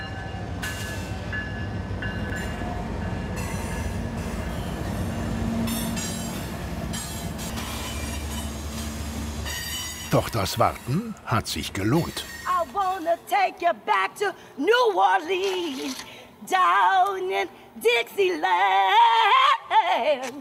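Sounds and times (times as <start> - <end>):
long freight train with about 100 wagons passing over crossings: 0.0 - 13.3
speech: 10.1 - 12.3, 13.1 - 20.4.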